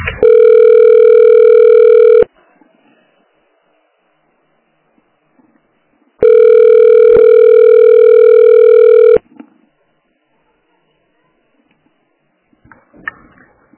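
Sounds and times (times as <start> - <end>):
telephone busy tone: 0.2 - 2.3, 6.2 - 9.2.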